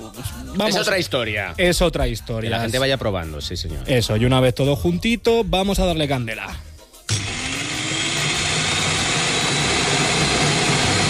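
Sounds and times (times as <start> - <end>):
speech: 0.5 - 6.7
electric food chopper running: 7.1 - 11.0.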